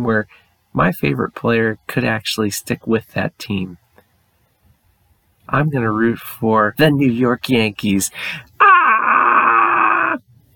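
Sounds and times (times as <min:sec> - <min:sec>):
speech: 0:00.0 - 0:03.8, 0:05.5 - 0:08.7
man screaming: 0:08.6 - 0:10.2.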